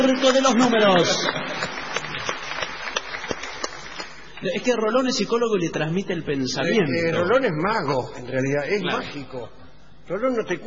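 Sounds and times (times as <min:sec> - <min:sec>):
speech: 0:00.0 - 0:01.6, 0:04.4 - 0:10.6
audience applause at a comedic Circus of Numbers segment: 0:00.0 - 0:04.8.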